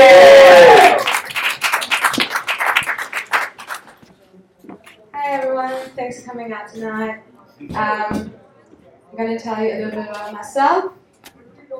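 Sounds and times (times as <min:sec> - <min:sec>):
loud voiced shout: 0:00.0 - 0:01.2
comedy club audience clapping: 0:00.6 - 0:04.1
speech: 0:06.3 - 0:08.4, 0:09.1 - 0:11.0.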